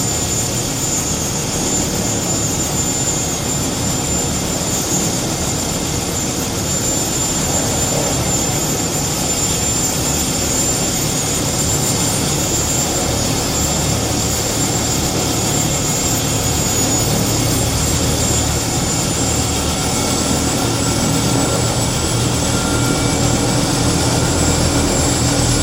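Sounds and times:
Bell UH-1 Iroquois helicopter landing and shutting down: 0.0 - 25.6.

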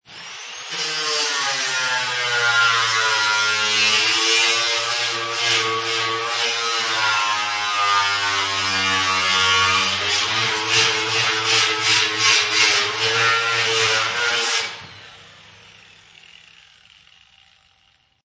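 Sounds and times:
disc sander working on solid metal: 0.1 - 17.9.

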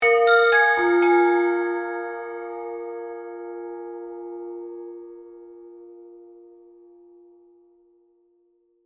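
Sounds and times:
mysterious Chinese oriental bells accent: 0.0 - 6.0.

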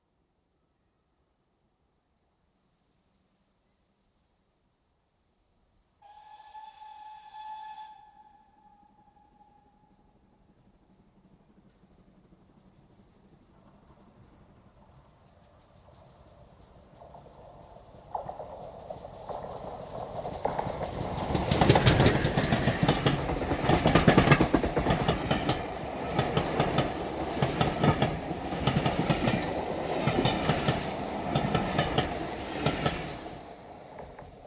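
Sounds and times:
steam train whistle: 6.0 - 10.3
steam train passing at high speed: 6.0 - 34.4.

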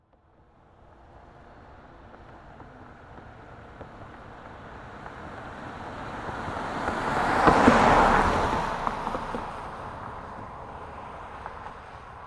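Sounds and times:
car passing by: 0.9 - 12.2.

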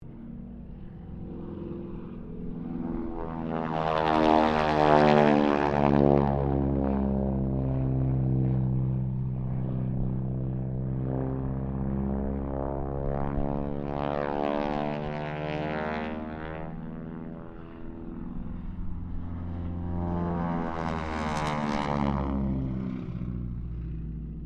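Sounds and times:
Harvard squadron aircraft pass: 0.0 - 24.4.

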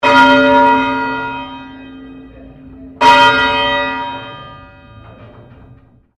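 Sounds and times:
St Pauls Cathedral Melbourne bell ringing: 0.0 - 6.1.

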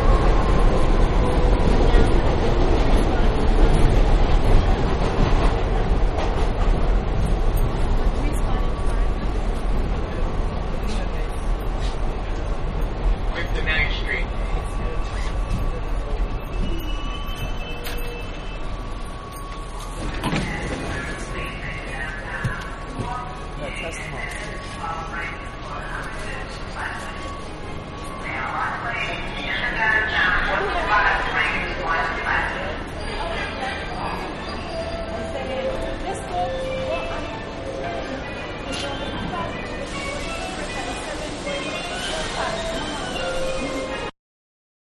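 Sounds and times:
subway train ride heard on board: 0.0 - 44.2.

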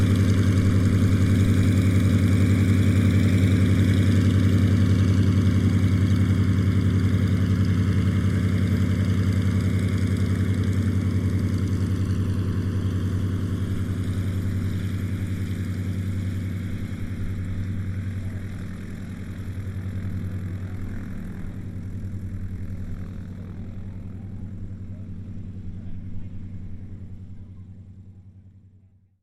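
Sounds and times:
Yak82 aircraft taxiing close: 0.0 - 28.9.

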